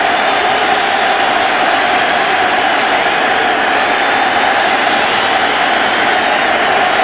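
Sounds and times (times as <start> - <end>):
idle crowd noise: 0.0 - 7.0.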